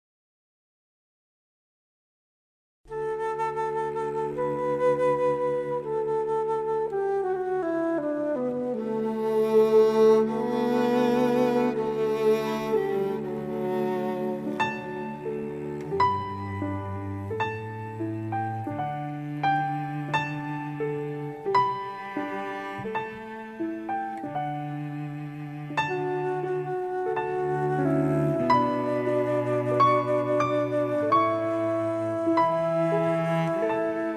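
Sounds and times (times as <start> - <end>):
instrumental hymn: 2.9 - 34.1.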